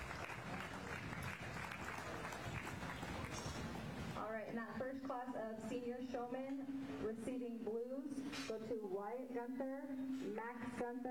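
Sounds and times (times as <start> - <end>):
audience applause: 0.0 - 4.2
speech: 4.3 - 11.0.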